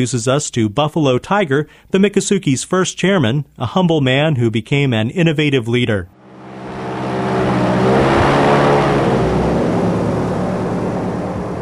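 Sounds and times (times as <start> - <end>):
speech: 0.0 - 6.2
airboat engine roaring with buzzing propeller drone: 6.2 - 11.5.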